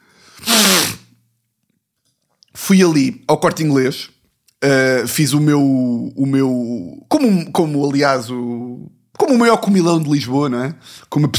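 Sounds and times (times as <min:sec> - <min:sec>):
sniffling: 0:00.2 - 0:01.1
speech: 0:02.7 - 0:11.3.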